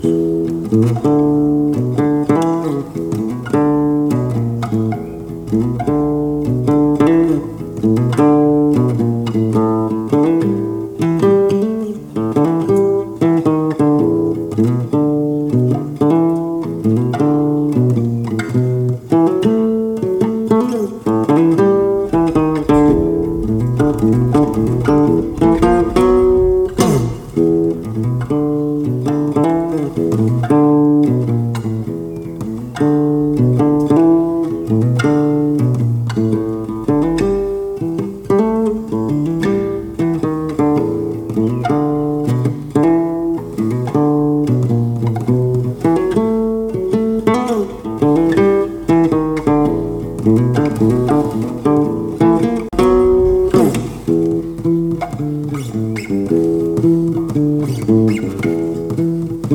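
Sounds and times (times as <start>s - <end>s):
beach blues music: 0.0s - 59.5s.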